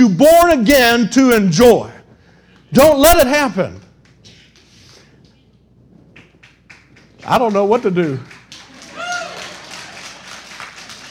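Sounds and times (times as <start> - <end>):
speech: 0.0 - 1.9, 2.7 - 3.8, 7.2 - 8.3
audience applause: 6.4 - 11.0.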